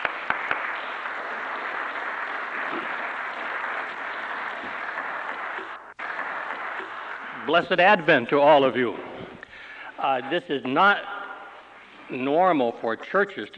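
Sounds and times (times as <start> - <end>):
applause: 0.0 - 7.8
speech: 7.5 - 9.2, 10.0 - 11.1, 12.1 - 13.5.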